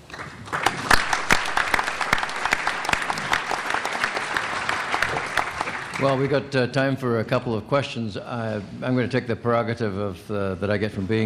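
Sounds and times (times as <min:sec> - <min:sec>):
audience applause: 0:00.0 - 0:06.4
speech: 0:06.0 - 0:11.2.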